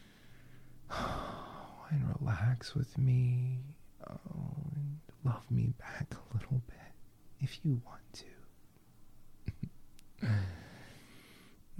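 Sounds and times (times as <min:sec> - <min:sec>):
person breathing during a relaxation moment: 0:00.0 - 0:01.8, 0:10.2 - 0:11.7
speech: 0:01.9 - 0:04.6, 0:05.2 - 0:08.4.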